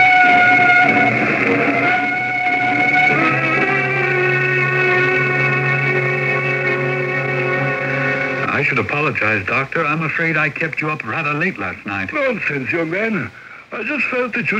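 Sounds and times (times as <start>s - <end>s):
shrill squealing tones like brakes or a whistle: 0.0s - 8.4s
train arriving at a railway station rumbling: 0.0s - 8.5s
speech: 9.1s - 14.5s.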